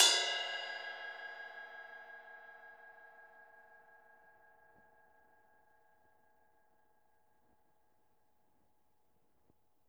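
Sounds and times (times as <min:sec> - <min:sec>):
ride drums and percussion: 0:00.0 - 0:02.6.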